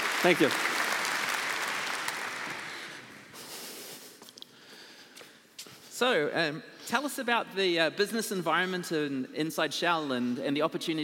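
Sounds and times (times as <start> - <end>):
audience applause welcoming a speaker on stage at a business technology conference: 0.0 - 3.3
speech: 0.2 - 0.7, 6.0 - 11.0.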